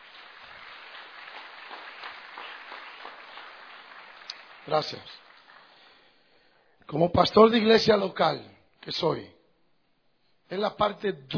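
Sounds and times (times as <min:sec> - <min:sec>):
audience applause: 0:00.0 - 0:06.0
speech: 0:04.7 - 0:05.2, 0:06.9 - 0:09.4, 0:10.5 - 0:11.3.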